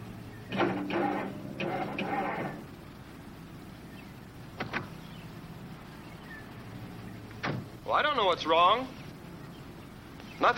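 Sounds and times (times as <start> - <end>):
car starter motor cranking but failing to start: 0.5 - 2.8
speech: 7.9 - 9.0, 10.4 - 10.5.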